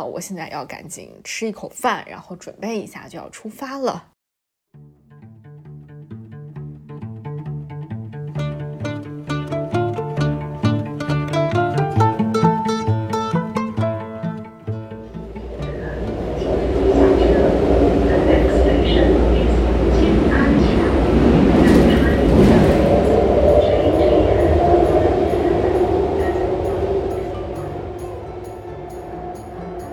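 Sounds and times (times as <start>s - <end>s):
speech: 0.0s - 4.1s
subway train riding: 9.2s - 29.9s.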